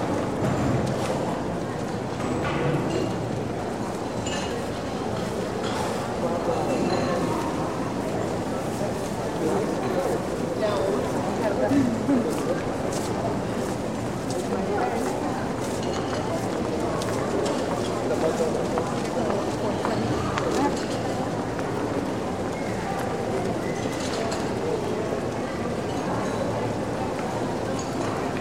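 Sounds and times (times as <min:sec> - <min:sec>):
medium indoor shopping mall general ambience: 0:00.0 - 0:28.3.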